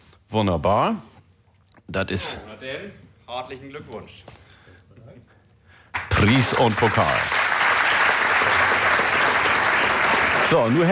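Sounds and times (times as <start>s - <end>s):
speech: 0.3s - 1.1s, 1.9s - 4.4s, 6.2s - 7.4s, 10.5s - 10.9s
audience clapping at a prize giving: 5.9s - 10.9s.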